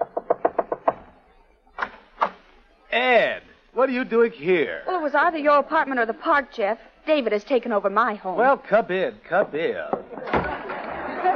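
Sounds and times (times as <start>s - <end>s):
frantic knocking on a door: 0.0s - 1.1s
speech: 2.9s - 10.4s
laughter: 10.0s - 11.3s.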